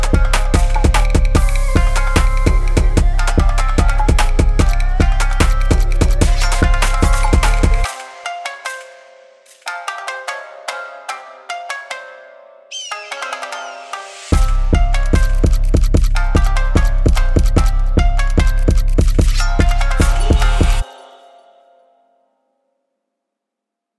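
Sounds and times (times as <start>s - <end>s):
jersey drill beat in C minor: 0.0s - 8.8s, 14.4s - 20.9s.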